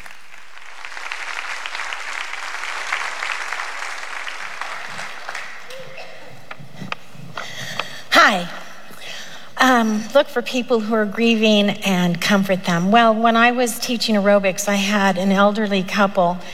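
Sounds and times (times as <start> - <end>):
audience applause welcoming a woman speaker to the stage: 0.0 - 7.0
speech: 9.8 - 16.5.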